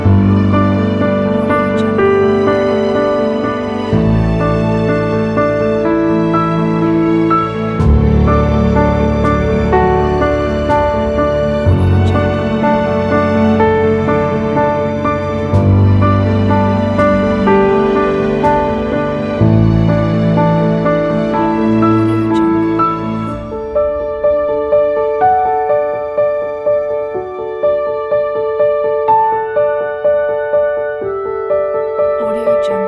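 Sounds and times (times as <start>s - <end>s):
uplifting emotional piano: 0.0s - 32.8s.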